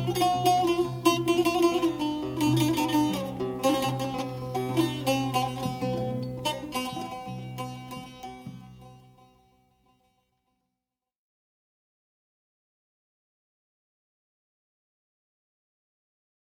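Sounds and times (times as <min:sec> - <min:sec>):
Arab taqasim improvisation: 0:00.0 - 0:09.4.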